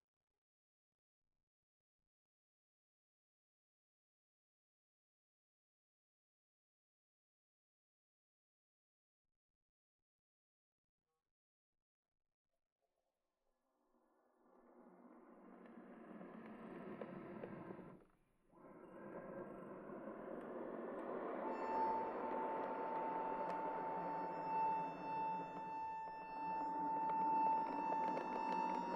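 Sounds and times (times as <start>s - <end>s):
noise: 14.3s - 28.9s.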